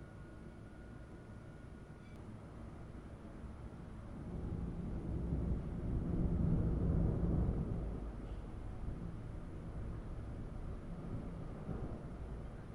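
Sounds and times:
thunder in an afternoon storm: 4.2s - 12.5s.

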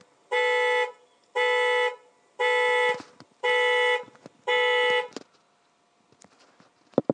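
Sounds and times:
car alarm: 0.3s - 5.1s.

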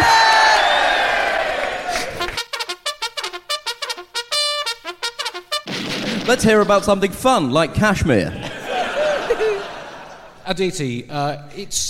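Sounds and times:
audience cheering: 0.0s - 2.4s, 8.5s - 10.2s
speech: 6.3s - 8.4s, 10.5s - 11.8s
laughter: 8.2s - 10.4s.

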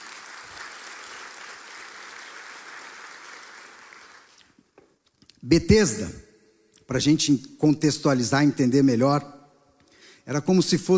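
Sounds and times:
sustained applause from a sizable crowd: 0.0s - 4.4s
speech: 5.4s - 6.2s, 6.9s - 9.4s, 10.3s - 10.9s.

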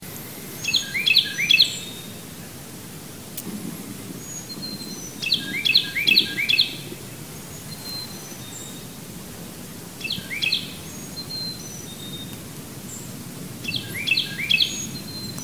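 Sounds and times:
Carolina Wren singing: 0.5s - 2.2s, 4.2s - 6.8s, 10.0s - 15.4s.

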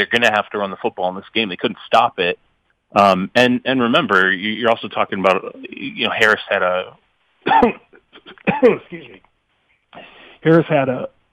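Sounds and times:
speech: 0.0s - 9.3s, 9.9s - 11.2s
throat clearing: 7.5s - 9.2s.

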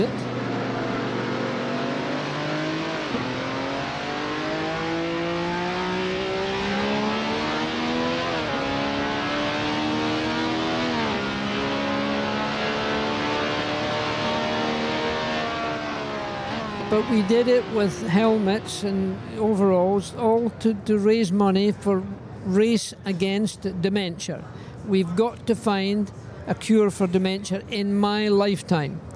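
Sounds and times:
speech: 0.0s - 0.2s, 16.9s - 29.1s
championship race car engine revving: 0.0s - 19.4s.

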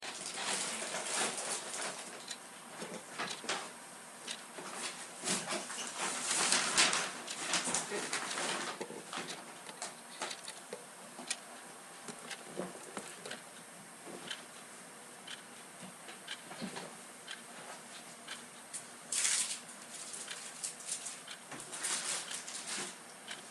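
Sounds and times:
person cleaning room: 0.0s - 23.4s
clock ticking: 1.2s - 3.5s, 4.2s - 4.5s, 6.4s - 16.5s, 17.2s - 18.7s, 21.3s - 21.5s, 23.2s - 23.4s.

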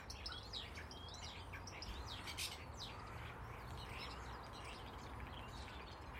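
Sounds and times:
bird singing: 0.0s - 6.1s.

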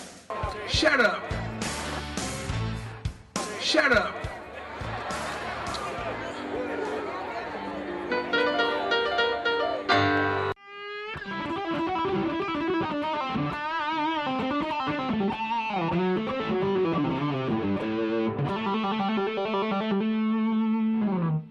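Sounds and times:
laughter: 0.3s - 2.3s, 3.5s - 9.1s
speech: 0.8s - 1.3s, 3.7s - 4.2s
electric guitar playing A blues scale: 4.9s - 21.4s.

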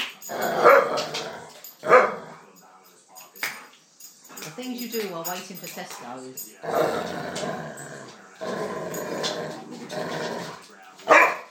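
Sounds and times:
dog growling: 0.2s - 2.6s, 6.6s - 11.4s
dog barking viciously while jumping up: 0.3s - 2.4s, 11.1s - 11.4s
speech: 4.6s - 10.2s.

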